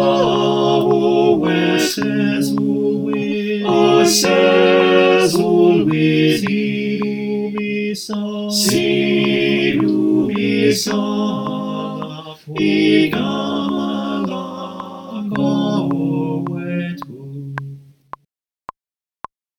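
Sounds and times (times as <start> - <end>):
SATB choir singing with call: 0.0 - 17.8
click track: 1.8 - 4.4, 5.3 - 18.2.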